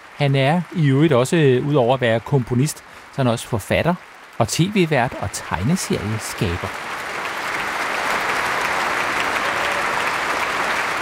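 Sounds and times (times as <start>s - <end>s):
large concert audience applause: 0.0s - 11.0s
speech: 0.2s - 7.0s.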